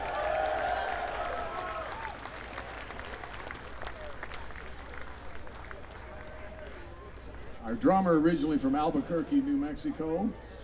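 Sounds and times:
audience applause: 0:00.0 - 0:06.8
speech: 0:07.7 - 0:10.5.

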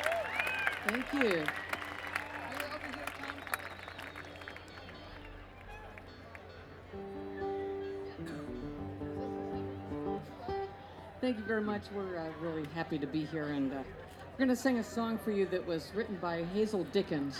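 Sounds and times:
faint audience applause welcoming bluegrass guests: 0:00.0 - 0:06.4
speech: 0:00.9 - 0:01.7, 0:11.3 - 0:17.3
sustained instrument tones: 0:06.9 - 0:11.0.

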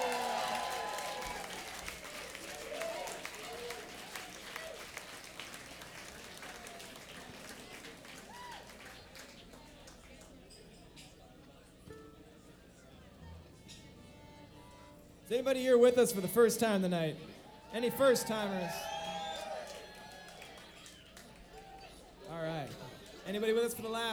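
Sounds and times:
crowd whooping and cheering: 0:00.0 - 0:05.4, 0:07.7 - 0:09.0, 0:17.3 - 0:23.3
crowd applause: 0:00.0 - 0:10.4, 0:17.2 - 0:24.1
speech: 0:15.3 - 0:18.9, 0:23.3 - 0:24.1.

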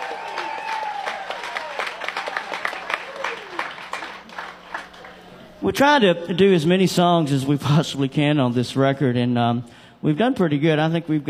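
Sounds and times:
audience round of applause: 0:00.0 - 0:05.5
speech: 0:05.6 - 0:11.2.

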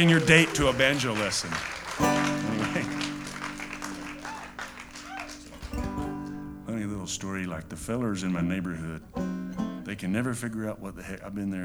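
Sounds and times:
speech: 0:00.0 - 0:01.8, 0:07.1 - 0:09.3, 0:09.9 - 0:11.6
audience applause: 0:00.0 - 0:07.5
laughter: 0:00.0 - 0:11.6.

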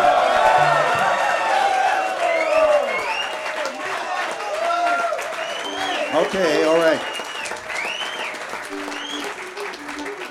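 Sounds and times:
audience applause: 0:00.0 - 0:10.2
speech: 0:06.3 - 0:07.2.

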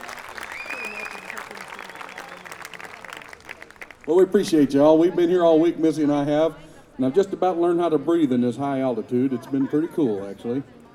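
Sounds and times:
crowd applause for contest winners: 0:00.0 - 0:04.2
sharp whistle: 0:00.2 - 0:02.8
speech: 0:04.0 - 0:10.8.

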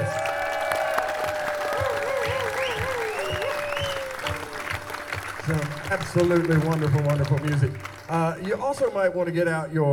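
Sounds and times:
whistles and cheers: 0:00.0 - 0:05.1
crowd applauding: 0:00.0 - 0:09.6
speech: 0:05.5 - 0:09.9.

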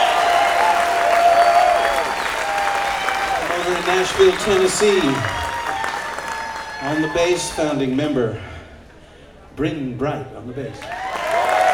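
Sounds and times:
audience applause welcoming a mandolin player: 0:00.0 - 0:08.2, 0:10.8 - 0:11.7
speech: 0:04.0 - 0:05.4, 0:06.8 - 0:08.5, 0:09.6 - 0:11.0.

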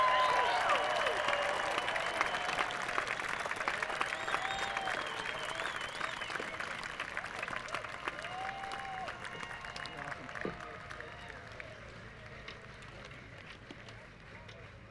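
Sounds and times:
festival crowd whoops and whistles: 0:00.0 - 0:06.6
festival crowd clapping at Merlefest in Wilkesboro, North Carolina: 0:00.0 - 0:14.8.

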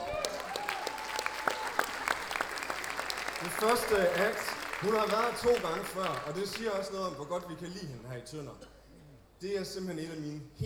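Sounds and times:
faint tonal whistle or cheer: 0:00.0 - 0:02.2
crowd applause: 0:00.0 - 0:07.4
speech: 0:03.4 - 0:08.7, 0:09.4 - 0:10.6.

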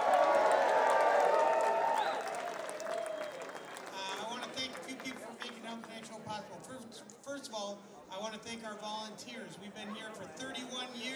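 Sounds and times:
audience applause and cheering: 0:00.0 - 0:04.1
people whistling: 0:01.9 - 0:02.3
speech: 0:08.5 - 0:11.1.

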